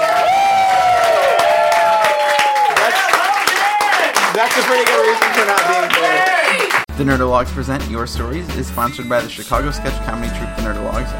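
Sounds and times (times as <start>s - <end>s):
whoops and shouts: 0.0s - 4.1s
audience applause at a live comedy storytelling show: 0.0s - 6.9s
speech: 4.4s - 11.1s.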